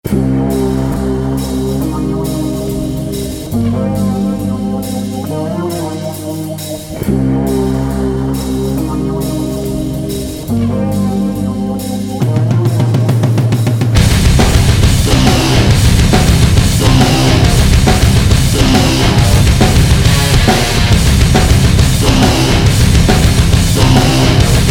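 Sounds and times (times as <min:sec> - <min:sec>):
instrumental music: 0:00.1 - 0:24.6.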